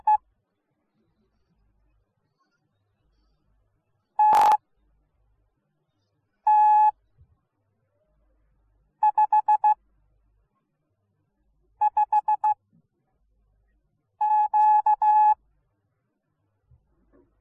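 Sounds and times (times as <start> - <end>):
morse code beeps: 0.0 - 0.2, 4.2 - 4.6, 6.5 - 6.9, 9.0 - 9.8, 11.8 - 12.6, 14.2 - 15.4.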